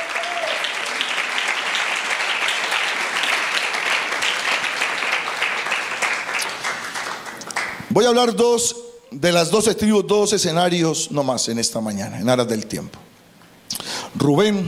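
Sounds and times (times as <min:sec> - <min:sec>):
audience applauding: 0:00.0 - 0:07.9
speech: 0:07.9 - 0:13.1, 0:14.2 - 0:14.6.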